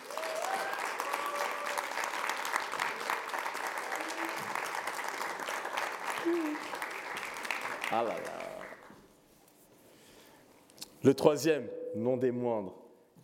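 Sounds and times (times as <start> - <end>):
crowd clapping for a dance-event organiser: 0.0 - 9.1
speech: 7.9 - 8.4, 11.0 - 12.8
whistles and shouts: 11.6 - 12.3.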